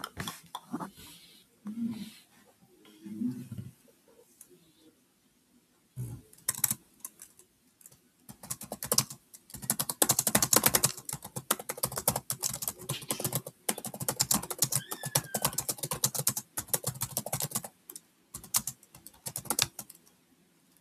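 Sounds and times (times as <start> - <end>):
soft low murmurs: 0.0 - 6.9
typing on a keyboard: 6.3 - 20.2.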